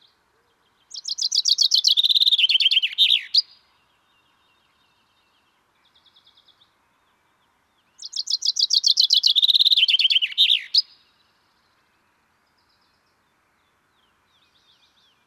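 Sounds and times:
common chaffinch Fringilla coelebs singing descending trilled phrases: 0:00.9 - 0:03.6, 0:08.0 - 0:11.0.

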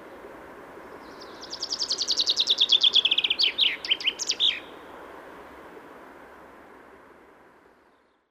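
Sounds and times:
common chaffinch Fringilla coelebs calls and song: 0:00.9 - 0:04.7.

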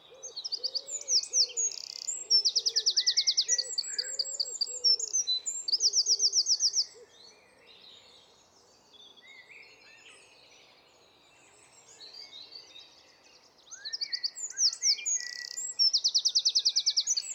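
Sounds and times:
Eurasian wren singing with a rattling trill: 0:00.3 - 0:07.0, 0:13.9 - 0:17.3.

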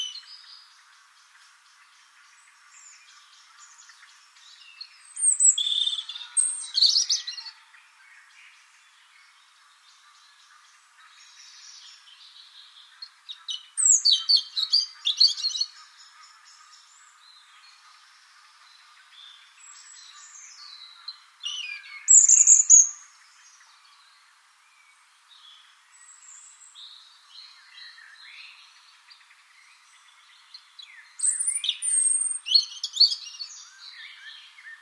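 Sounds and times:
European robin warbling song: 0:00.0 - 0:00.7, 0:02.4 - 0:07.7, 0:12.9 - 0:17.0, 0:18.8 - 0:23.6, 0:30.4 - 0:34.8.

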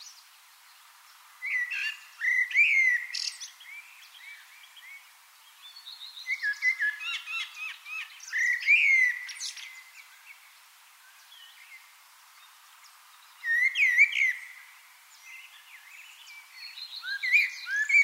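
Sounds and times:
common blackbird Turdus merula singing a varied warbling song: 0:01.4 - 0:05.0, 0:05.6 - 0:10.4, 0:13.3 - 0:18.0.

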